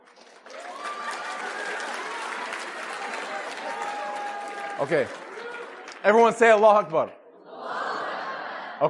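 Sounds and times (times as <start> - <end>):
audience round of applause: 0.0 - 7.0
speech: 4.8 - 5.2, 6.0 - 7.2
laughter: 7.4 - 8.8.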